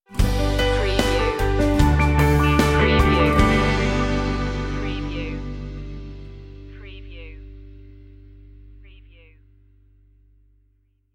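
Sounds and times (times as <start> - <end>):
dreamy music stinger: 0.2 - 8.8.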